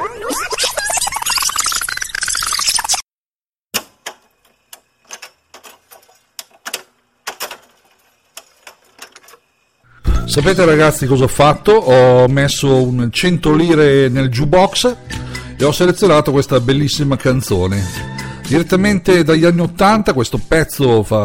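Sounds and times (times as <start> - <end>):
cassette tape wound back by hand with a pencil: 0.0 - 3.1
speech: 10.4 - 21.2.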